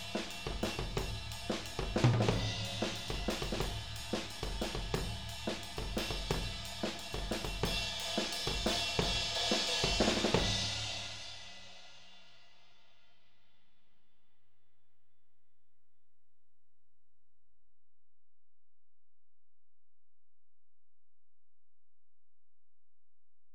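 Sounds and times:
tom drums mix: 0.0 - 11.6.

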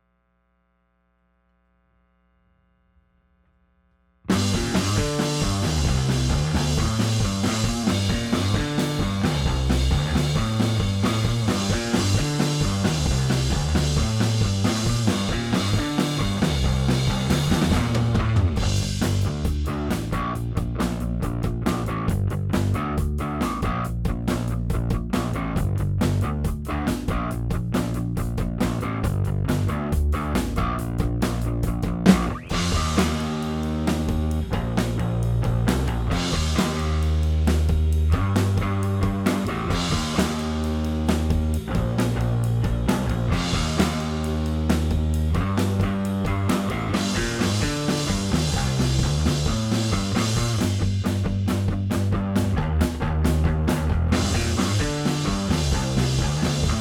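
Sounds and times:
bass: 0.9 - 56.8
drums: 4.2 - 56.8.

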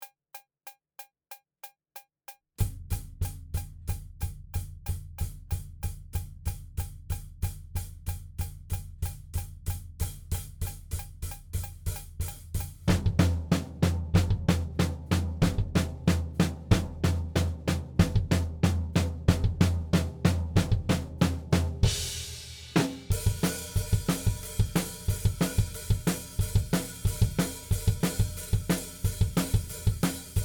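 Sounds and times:
drums: 2.6 - 30.4.

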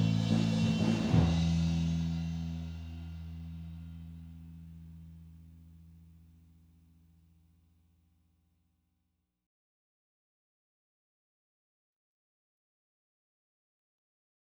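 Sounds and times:
bass recorded with SM57 microphone: 0.0 - 7.6.

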